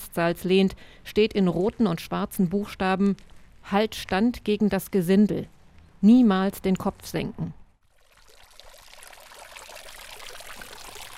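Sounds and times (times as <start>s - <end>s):
speech: 0.2s - 7.6s
fountain splashing in front of a small town hall across from a church: 7.9s - 11.1s.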